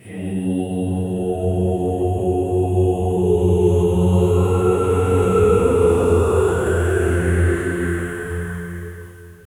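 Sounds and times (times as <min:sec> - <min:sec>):
dark ritual chanting: 0:00.0 - 0:09.4.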